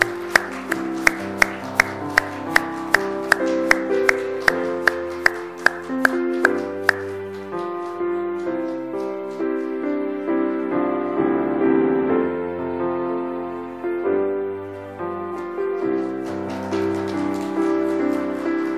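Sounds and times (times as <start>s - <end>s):
audience clapping in steady unison rhythm: 0.0s - 9.7s, 15.2s - 18.7s
sustained organ-like music: 0.0s - 18.7s.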